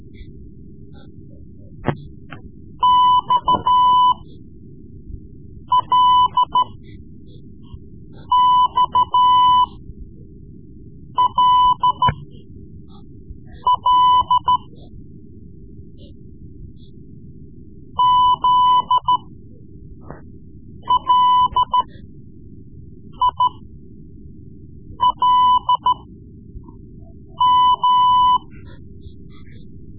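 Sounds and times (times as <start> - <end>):
Morse code lessons: 2.8 - 4.2, 5.8 - 6.8, 8.2 - 9.8, 11.2 - 12.3, 13.5 - 14.8, 18.0 - 19.2, 20.8 - 21.9, 23.2 - 23.6, 25.0 - 26.1, 27.3 - 29.6.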